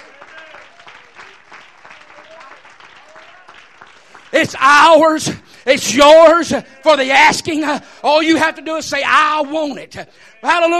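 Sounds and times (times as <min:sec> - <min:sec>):
audience clapping in praise: 0:00.0 - 0:05.6
speech: 0:04.4 - 0:10.7.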